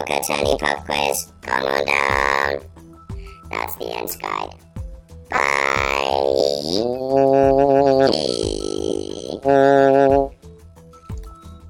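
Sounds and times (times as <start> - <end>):
speech: 0.0 - 2.8, 3.5 - 4.7, 5.3 - 10.4
person yawning: 5.4 - 10.3.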